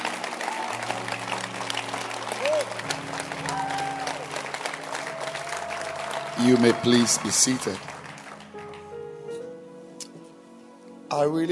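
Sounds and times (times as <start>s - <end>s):
audience clapping hands: 0.0s - 9.2s
speech: 6.4s - 7.9s, 11.1s - 11.5s.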